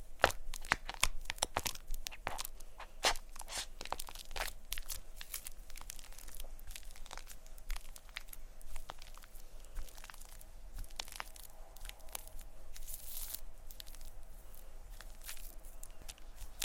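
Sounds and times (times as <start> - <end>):
faint low hum: 0.0 - 16.6
shaving cream and plastic wrap crinkling: 0.0 - 16.6.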